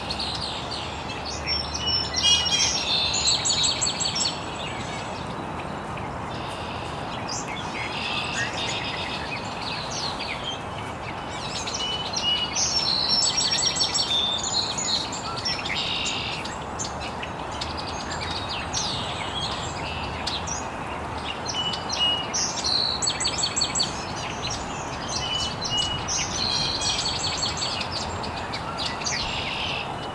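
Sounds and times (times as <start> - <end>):
birds chirping: 0.0 - 30.1.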